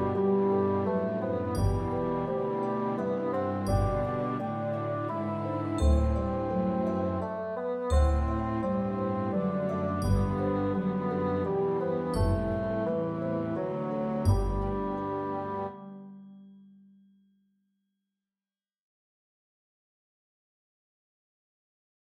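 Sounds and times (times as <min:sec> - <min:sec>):
mini bassoon track with melody: 0:00.0 - 0:16.2.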